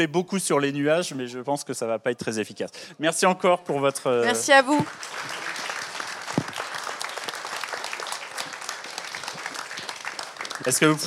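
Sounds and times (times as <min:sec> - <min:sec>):
speech: 0:00.0 - 0:05.6, 0:10.6 - 0:11.0
audience applause: 0:04.4 - 0:11.0.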